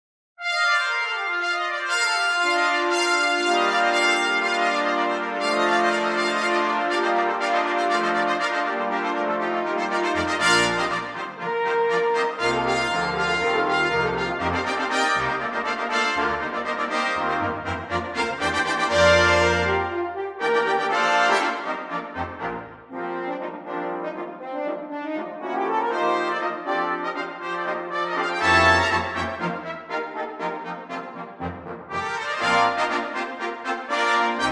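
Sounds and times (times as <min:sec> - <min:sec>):
fanfare: 0:00.4 - 0:34.5.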